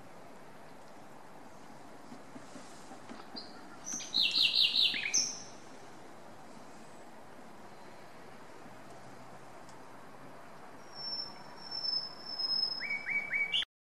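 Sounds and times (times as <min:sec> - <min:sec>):
background hiss: 0:00.0 - 0:13.6
common nightingale chirps and whistle: 0:03.4 - 0:05.6, 0:10.8 - 0:13.7.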